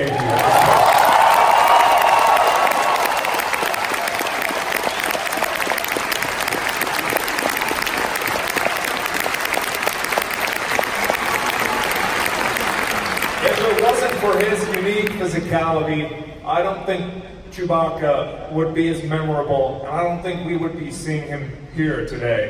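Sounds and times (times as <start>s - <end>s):
audience applause: 0.0s - 15.2s
speech: 15.5s - 22.4s.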